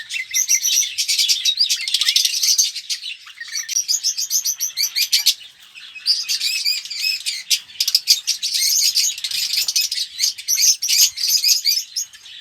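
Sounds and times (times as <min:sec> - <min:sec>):
red-rumped parrot Psephotus haematonotus song of sharp chirping and rattling trills: 0:00.0 - 0:12.3.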